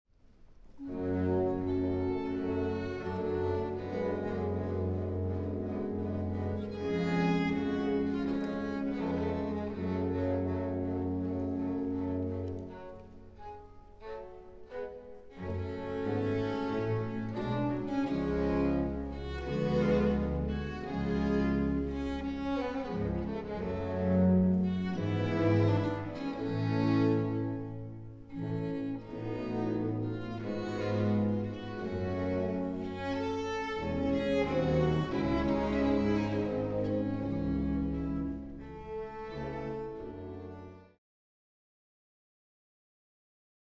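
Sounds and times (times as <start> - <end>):
live baroque orchestra playing: 0.7 - 41.0.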